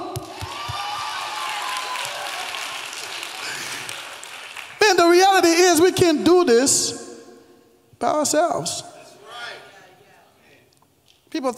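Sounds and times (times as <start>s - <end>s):
audience clapping: 0.1s - 5.0s
faint voices cheering: 0.2s - 3.8s
speech: 5.4s - 7.0s, 8.0s - 8.9s, 11.4s - 11.5s.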